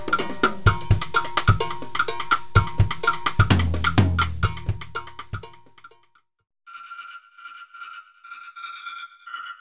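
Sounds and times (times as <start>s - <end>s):
drum groove: 0.0s - 6.1s.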